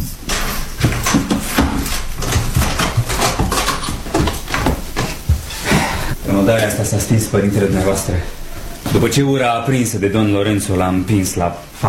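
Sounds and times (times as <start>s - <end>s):
knocks and clicks: 0.3s - 5.7s
old door creaking and rattling as forced open: 0.3s - 6.1s
speech: 6.5s - 11.8s.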